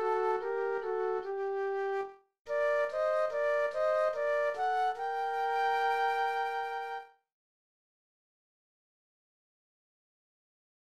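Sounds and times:
flute duet: 0.0s - 7.2s.

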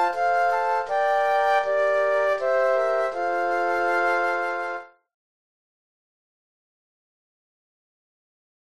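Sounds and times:
flute quartet: 0.0s - 5.0s.

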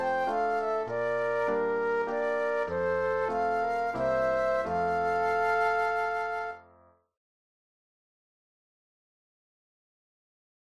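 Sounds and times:
flute duet: 0.0s - 6.7s
piano: 0.0s - 7.0s.

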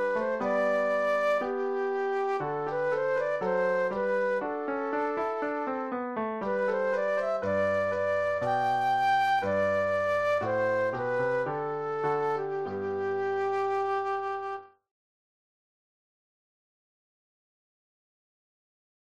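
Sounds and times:
flute solo: 0.0s - 14.8s.

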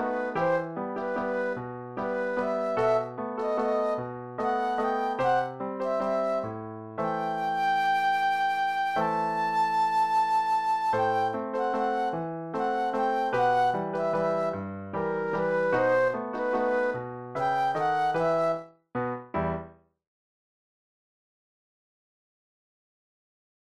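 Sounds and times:
flute solo: 0.0s - 18.7s.

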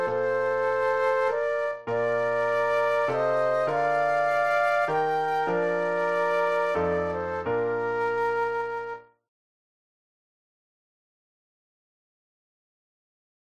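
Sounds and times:
classical flute duet: 0.0s - 9.2s
classical piano: 0.0s - 9.2s.

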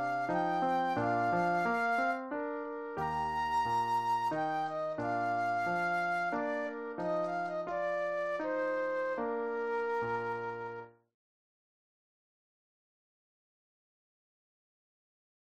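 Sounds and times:
classical flute solo lullaby: 0.0s - 10.9s.

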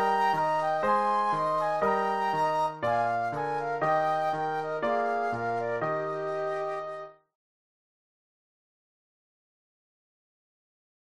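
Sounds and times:
classical burlesque flute duet: 0.0s - 7.3s
classical piano: 0.0s - 7.3s.

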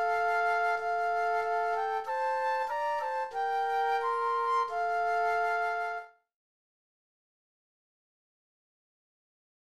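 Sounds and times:
flute duet: 0.0s - 6.2s.

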